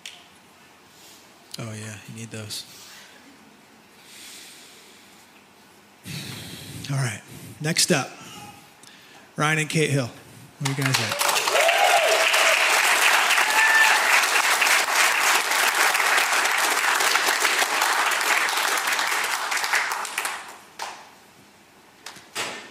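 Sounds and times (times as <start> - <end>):
speech: 1.6 - 2.9, 6.9 - 8.3, 9.4 - 11.2
audience clapping: 10.6 - 21.1.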